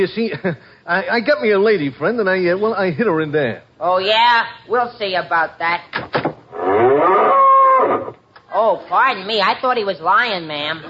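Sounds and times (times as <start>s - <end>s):
speech: 0.0s - 6.2s, 8.5s - 10.8s
cow mooing: 6.5s - 8.2s.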